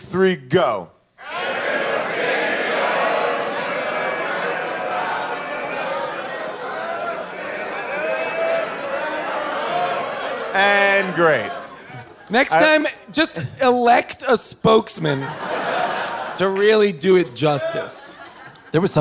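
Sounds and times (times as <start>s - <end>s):
speech: 0.1s - 1.0s, 10.6s - 11.6s, 12.3s - 15.7s, 16.4s - 18.9s
live show audience singing its own version of a theme song: 1.2s - 12.7s
laughter: 1.6s - 13.7s, 14.7s - 18.9s.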